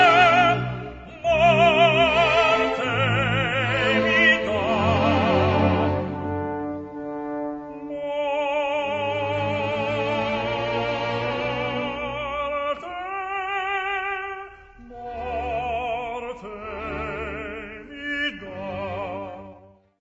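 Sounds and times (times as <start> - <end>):
tenor voice singing: 0.0 - 19.8.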